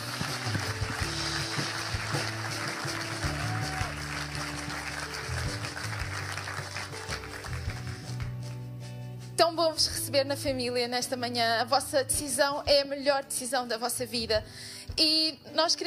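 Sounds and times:
crowd applause: 0.0 - 8.3
speech: 10.1 - 15.8.

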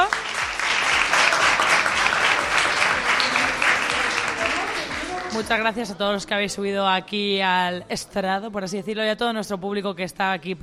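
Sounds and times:
audience applause: 0.0 - 5.5
speech: 5.4 - 10.6.

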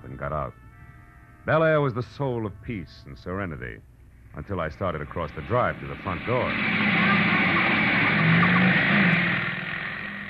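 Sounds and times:
speech: 0.2 - 0.7, 1.4 - 7.1
motorcycle speeding past: 5.2 - 10.2.

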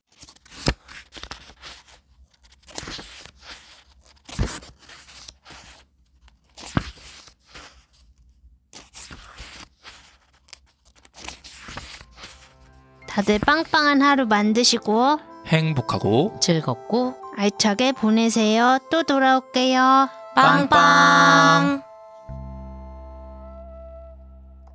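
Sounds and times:
book pages being turned: 0.0 - 14.2
speech: 13.2 - 21.9.

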